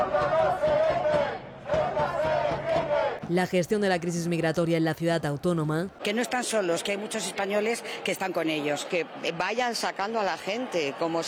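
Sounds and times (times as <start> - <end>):
protest crowd chanting a slogan: 0.0 - 11.2
speech: 3.3 - 11.2.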